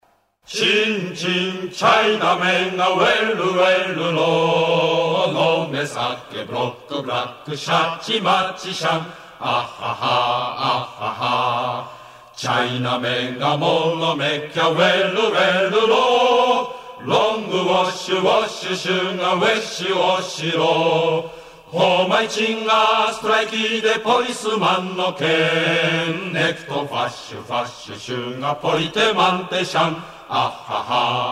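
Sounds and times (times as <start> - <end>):
folk song: 0.4 - 31.3.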